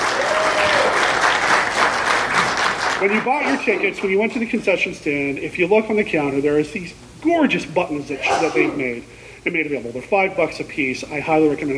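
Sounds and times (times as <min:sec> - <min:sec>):
crowd applauding: 0:00.0 - 0:04.1
speech: 0:03.0 - 0:11.7.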